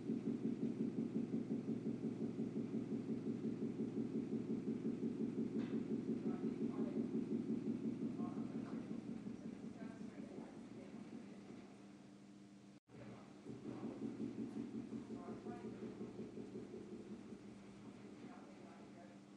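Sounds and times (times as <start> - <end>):
construction knocking noise in the office: 0.0 - 11.2, 13.4 - 17.6.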